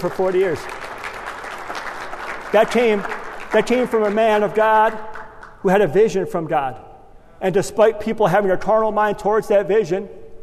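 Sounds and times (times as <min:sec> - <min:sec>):
speech: 0:00.0 - 0:00.9, 0:02.5 - 0:10.2
audience clapping: 0:00.0 - 0:05.6.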